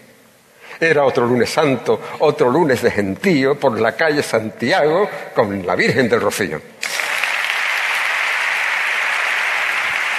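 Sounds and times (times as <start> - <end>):
speech: 0.8 - 6.8
strong ovation from a large crowd: 6.8 - 10.1.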